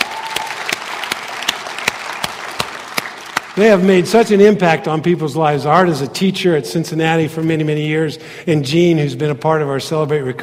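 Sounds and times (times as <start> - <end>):
audience applause: 0.0 - 3.6
speech: 3.6 - 10.4.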